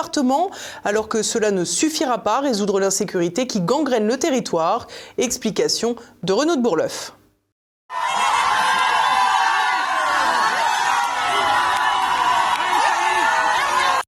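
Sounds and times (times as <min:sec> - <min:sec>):
speech: 0:00.0 - 0:07.2
crowd booing: 0:07.9 - 0:14.0.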